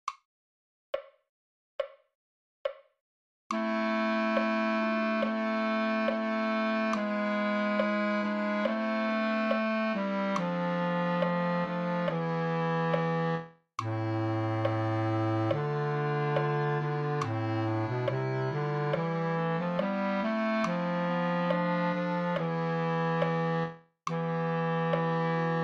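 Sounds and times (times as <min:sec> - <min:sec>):
bass: 0:03.5 - 0:25.6.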